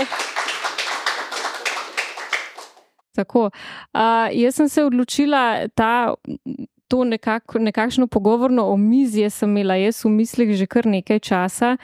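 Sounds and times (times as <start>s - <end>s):
audience applause: 0.0s - 2.8s
speech: 3.2s - 11.8s.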